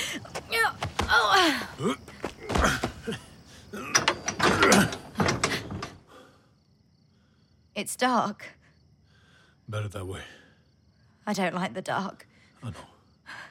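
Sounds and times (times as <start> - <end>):
speech: 0.1 - 3.2, 7.8 - 8.6, 9.7 - 10.4, 11.2 - 13.4
boxcar train mechanisms clanking as it starts moving: 3.8 - 6.0.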